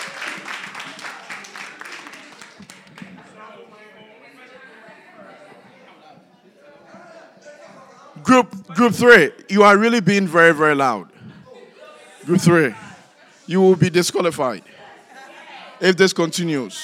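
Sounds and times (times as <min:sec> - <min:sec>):
audience clapping: 0:00.0 - 0:03.4
speech: 0:08.2 - 0:11.1, 0:12.2 - 0:12.8, 0:13.5 - 0:14.8, 0:15.8 - 0:16.8.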